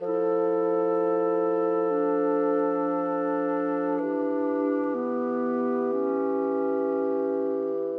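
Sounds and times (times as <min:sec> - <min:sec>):
cinematic bassoon: 0:00.0 - 0:07.9
cinematic clarinet: 0:00.0 - 0:07.9.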